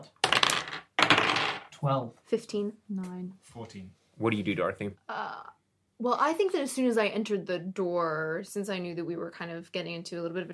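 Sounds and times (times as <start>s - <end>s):
dice rolling across a hard surface: 0.2s - 1.7s
speech: 1.8s - 10.5s.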